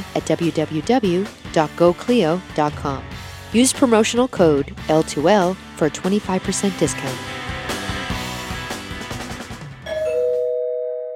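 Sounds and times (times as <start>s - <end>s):
speech: 0.2s - 7.4s
doorbell ringing: 9.8s - 11.1s.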